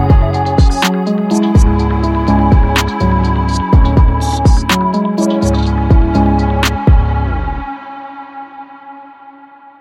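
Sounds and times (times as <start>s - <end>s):
multitrack hip hop music stems: 0.0s - 9.7s.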